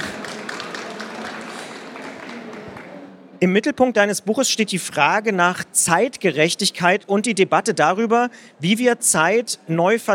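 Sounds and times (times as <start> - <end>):
audience applause: 0.0 - 3.0
speech: 3.4 - 10.1.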